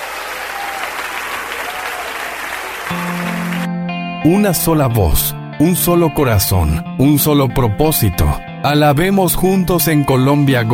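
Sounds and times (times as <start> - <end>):
crowd applauding: 0.0 - 3.7
speech: 4.2 - 10.7.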